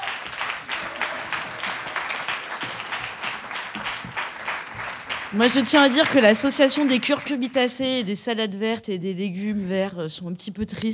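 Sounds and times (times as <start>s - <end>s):
audience applause: 0.0s - 7.8s
speech: 5.3s - 10.9s.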